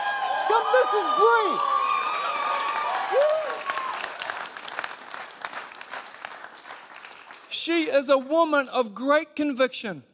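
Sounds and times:
audience applause: 0.0 - 7.8
speech: 0.8 - 1.8, 7.6 - 10.1.

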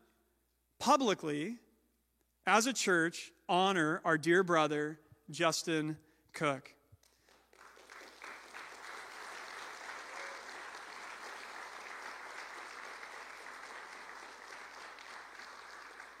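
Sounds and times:
speech: 0.8 - 1.6, 2.4 - 6.8
church audience applauding: 7.3 - 16.1.

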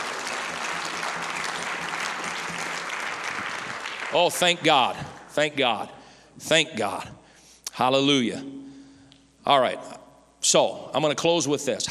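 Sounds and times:
people clapping hands: 0.0 - 5.8
speech: 4.1 - 7.2, 7.8 - 8.6, 9.4 - 11.8.

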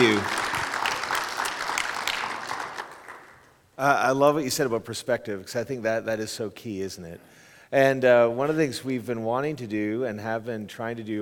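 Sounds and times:
audience applause: 0.0 - 3.4
speech: 3.8 - 11.2.

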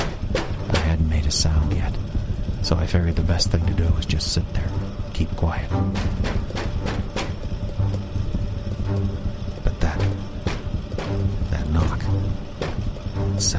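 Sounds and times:
sharp hollow knocks: 0.0 - 2.6, 5.8 - 13.5
steady low rumble: 0.0 - 13.5
speech: 1.3 - 2.0, 2.7 - 6.6, 13.4 - 13.5.

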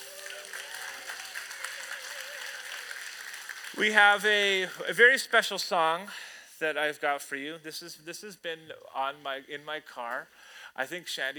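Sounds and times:
audience applause for mothers: 0.0 - 4.8
speech: 3.8 - 11.3.

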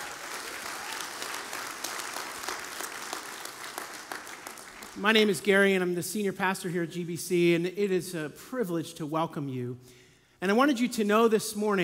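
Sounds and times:
audience clapping: 0.0 - 5.3
speech: 5.0 - 11.8.

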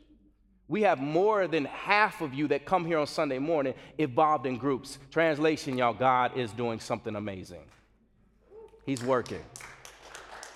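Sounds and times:
speech: 0.7 - 7.8, 8.8 - 9.8
golf clap of light polite claps from a small crowd: 8.7 - 10.5.

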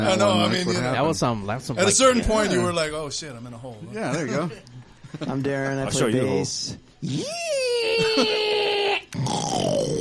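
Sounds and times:
speech: 0.0 - 8.5
person imitating a pig call: 7.0 - 9.9.

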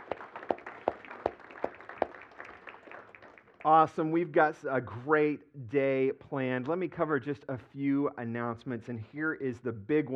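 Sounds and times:
audience clapping: 0.0 - 3.9
speech: 3.6 - 10.1.

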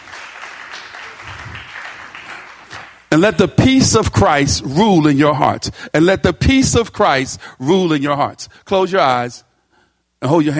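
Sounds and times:
crowd clapping: 0.0 - 3.1
speech: 3.1 - 9.5, 10.2 - 10.5.

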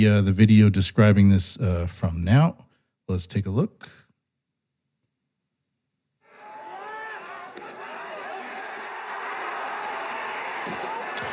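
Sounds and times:
speech: 0.0 - 4.0
large crowd shouting and cheering: 6.2 - 11.3.

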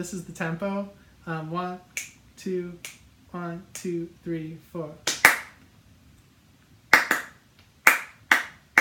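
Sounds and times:
speech: 0.0 - 5.1
band's rhythmic hand claps: 5.0 - 5.6, 6.9 - 8.8.

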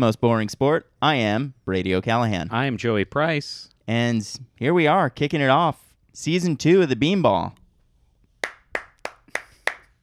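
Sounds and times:
speech: 0.0 - 7.6
sharp hand claps standing in for a studio audience: 8.4 - 10.0.

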